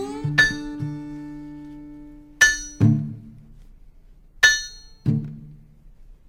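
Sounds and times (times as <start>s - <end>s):
steel-driving hammer striking steel: 2.4s - 3.1s, 4.4s - 5.1s.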